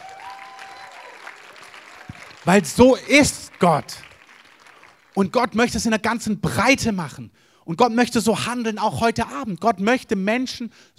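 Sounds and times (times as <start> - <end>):
audience applause: 0.0 - 5.4
speech: 2.4 - 4.1, 5.2 - 10.9.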